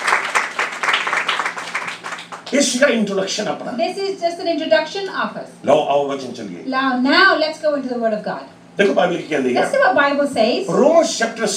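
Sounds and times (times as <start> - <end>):
church congregation clapping to glorify God: 0.0 - 3.0
speech: 2.5 - 11.5.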